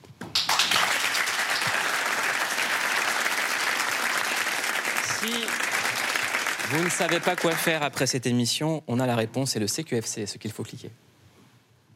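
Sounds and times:
audience applause: 0.3s - 7.9s
speech: 5.2s - 5.6s, 6.7s - 11.1s.

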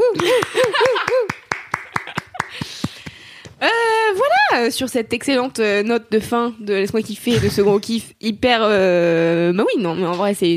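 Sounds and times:
hand clapping into a microphone: 0.2s - 3.5s
speech: 4.6s - 10.5s.

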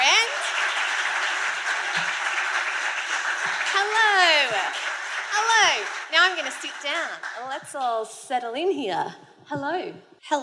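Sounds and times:
crowd applause: 0.0s - 7.6s
speech: 5.4s - 10.4s.

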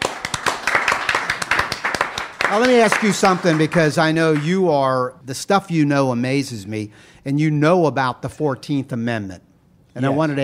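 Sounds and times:
clapping: 0.0s - 4.5s
speech: 2.5s - 10.4s.

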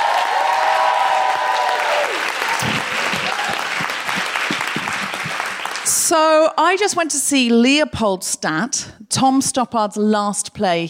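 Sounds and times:
audience applause greeting a comedian at a stand-up comedy show: 0.0s - 6.1s
speech: 6.1s - 10.8s.

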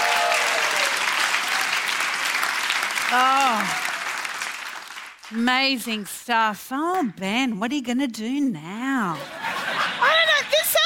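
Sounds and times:
audience applause: 0.0s - 5.4s
speech: 3.1s - 3.8s, 5.3s - 9.4s
laughter: 9.1s - 10.8s.

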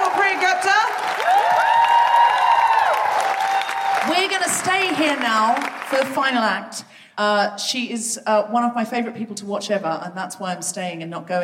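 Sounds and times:
audience cheering with high gliding whoops: 0.0s - 4.9s
audience applause: 0.0s - 6.2s
speech: 4.7s - 11.4s.

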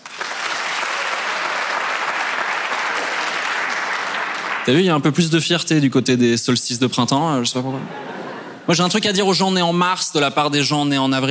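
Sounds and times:
applause: 0.0s - 5.0s
speech: 4.7s - 11.2s
laughter: 7.7s - 8.8s.

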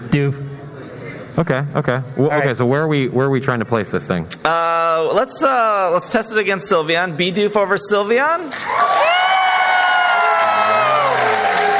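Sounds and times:
speech: 0.1s - 0.4s, 1.4s - 9.1s
audience booing: 8.7s - 11.7s.

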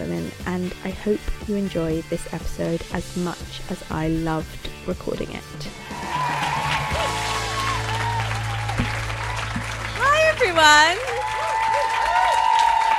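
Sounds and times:
speech: 0.3s - 6.3s, 10.4s - 11.3s
live audience clapping: 5.8s - 12.9s.

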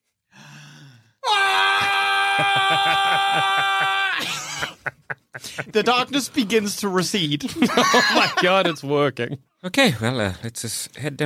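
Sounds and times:
man's barbarian war scream: 1.2s - 4.6s
laughter: 2.2s - 6.2s, 7.4s - 9.4s
speech: 2.4s - 4.3s, 5.7s - 11.2s.

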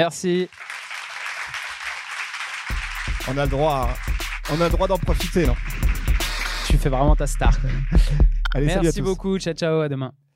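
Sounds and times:
speech: 0.0s - 0.8s, 3.2s - 5.8s, 6.7s - 10.2s
audience applause: 0.0s - 8.2s
laughter: 4.4s - 9.2s.

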